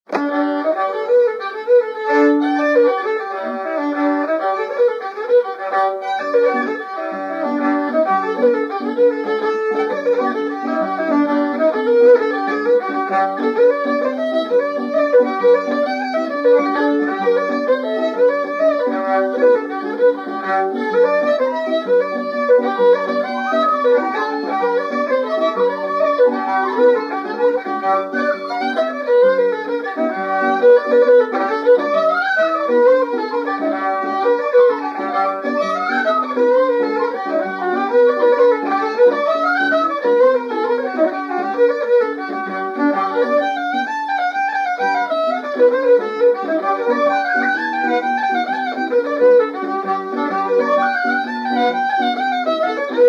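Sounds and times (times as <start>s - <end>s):
jig tune: 0.1s - 53.0s.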